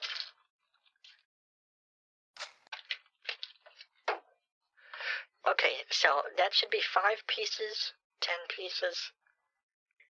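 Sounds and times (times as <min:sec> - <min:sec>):
scissors cutting through a card: 0:02.4 - 0:02.8
speech: 0:06.0 - 0:09.2.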